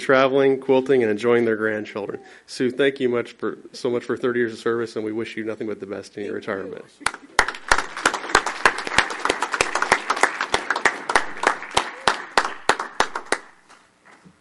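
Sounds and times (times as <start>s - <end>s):
speech: 0.0s - 7.3s
audience clapping: 7.0s - 13.8s.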